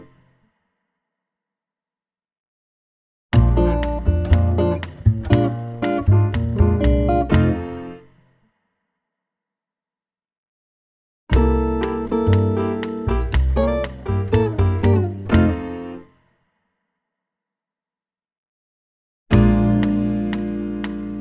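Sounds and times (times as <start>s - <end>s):
Latin rhythm pulse exercise at 120 BPM: 3.4s - 8.1s, 11.3s - 16.0s, 19.3s - 21.1s.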